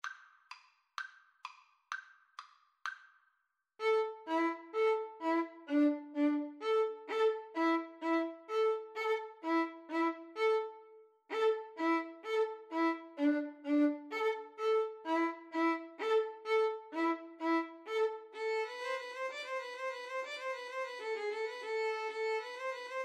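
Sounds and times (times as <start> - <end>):
violin playing tarantella: 3.8 - 23.0.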